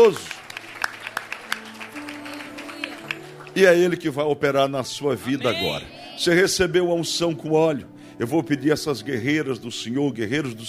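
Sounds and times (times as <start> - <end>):
speech: 0.0 - 0.3, 3.6 - 10.6
audience clapping: 0.0 - 4.1.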